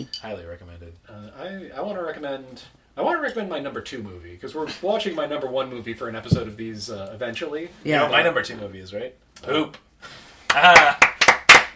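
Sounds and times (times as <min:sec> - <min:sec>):
speech: 0:00.0 - 0:11.0
applause: 0:10.5 - 0:11.7.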